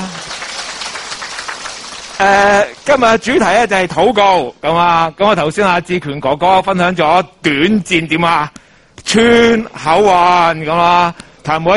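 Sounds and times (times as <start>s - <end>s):
audience clapping at a prayer-themed church gathering: 0.0s - 3.6s
speech: 2.2s - 11.7s.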